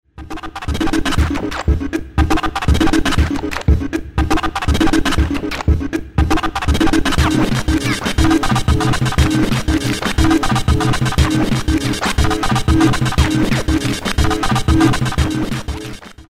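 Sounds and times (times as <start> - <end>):
beats: 0.2 - 16.2.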